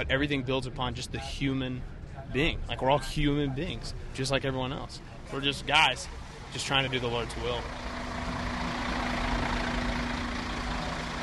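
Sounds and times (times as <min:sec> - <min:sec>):
speech: 0:00.0 - 0:07.9
bus engine idling: 0:00.0 - 0:11.2.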